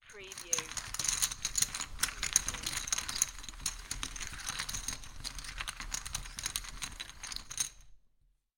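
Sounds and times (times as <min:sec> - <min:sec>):
poker chips rummaging around on table: 0:00.0 - 0:08.0.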